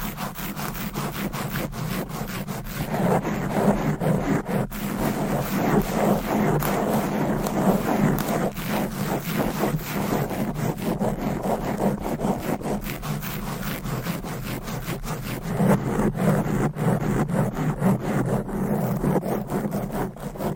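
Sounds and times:
nails scratching fast across a microphone cover: 0.0s - 20.5s.

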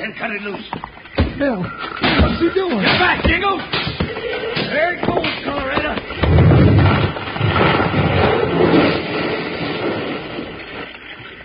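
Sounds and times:
speech: 0.0s - 5.8s
big wooden beam crashing down over a door: 1.2s - 9.5s.

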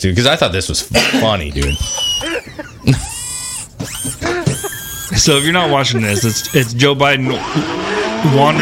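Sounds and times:
speech: 0.0s - 3.1s, 5.2s - 8.6s
laughter: 0.6s - 3.2s, 4.1s - 6.8s
robotic servo whirring: 1.6s - 2.2s, 2.9s - 6.8s
electronic sweeping tones: 3.0s - 6.8s.

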